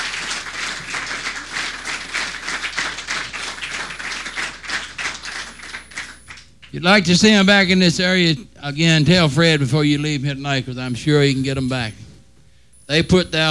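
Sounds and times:
audience applause: 0:00.0 - 0:06.5
speech: 0:06.7 - 0:12.0, 0:12.9 - 0:13.4.

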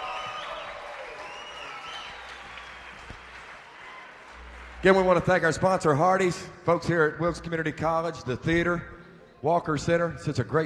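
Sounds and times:
festival crowd applauding: 0:00.0 - 0:05.9
speech: 0:04.8 - 0:10.6.

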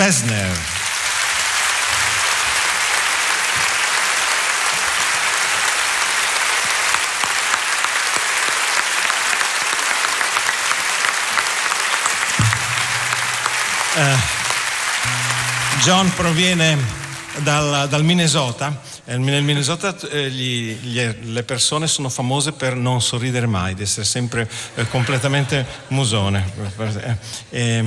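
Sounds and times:
speech: 0:00.0 - 0:00.8, 0:14.0 - 0:14.4, 0:15.8 - 0:27.8
audience applause welcoming guest: 0:00.0 - 0:17.7
faint tonal sounds: 0:12.4 - 0:18.3.

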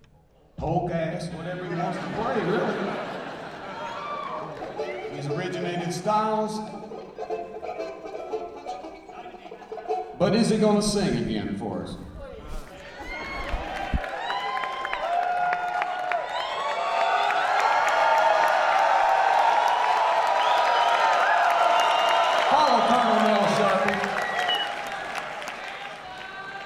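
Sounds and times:
speech: 0:00.6 - 0:03.1, 0:04.8 - 0:06.9, 0:10.2 - 0:12.0
laughter: 0:01.2 - 0:15.0
spontaneous burst of applause: 0:02.0 - 0:05.4, 0:12.5 - 0:26.6.

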